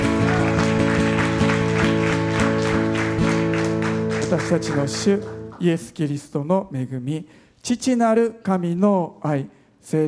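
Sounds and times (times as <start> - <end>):
audience applause: 0.0 - 5.6
speech: 4.4 - 10.0.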